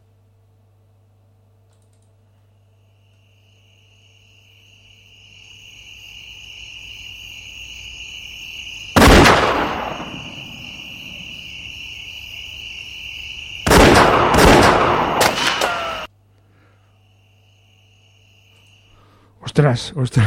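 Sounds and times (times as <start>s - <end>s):
crickets chirping: 0.7s - 20.2s
gunfire at people crossing illegally into the United States: 9.0s - 10.7s, 13.6s - 16.1s.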